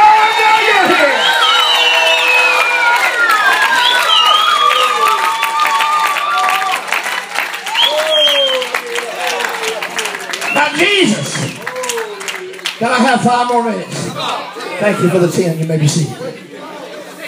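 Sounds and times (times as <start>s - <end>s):
audience screaming and cheering: 0.0s - 15.7s
applause: 0.1s - 13.6s
speech: 12.9s - 14.0s, 14.8s - 16.4s.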